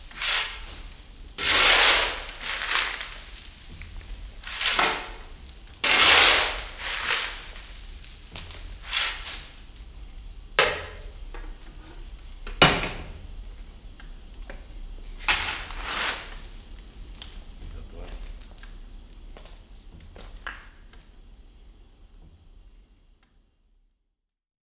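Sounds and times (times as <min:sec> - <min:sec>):
coal shovel at a steam pumping station: 0:00.0 - 0:09.8, 0:15.2 - 0:16.5.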